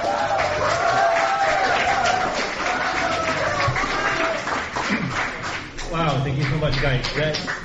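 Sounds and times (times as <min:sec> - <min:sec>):
crowd cheering: 0:00.0 - 0:05.4
audience applause: 0:00.0 - 0:07.6
speech: 0:06.3 - 0:07.6.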